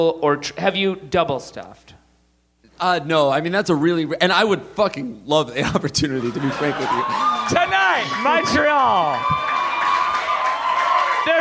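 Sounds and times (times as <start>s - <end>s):
speech: 0.0s - 2.0s, 2.8s - 9.4s
laughter: 5.6s - 8.5s
crowd of women screaming and cheering: 6.4s - 11.3s.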